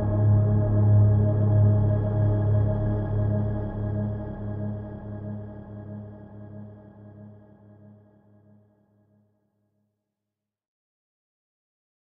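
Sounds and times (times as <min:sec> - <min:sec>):
ambient music interlude: 0:00.0 - 0:07.4.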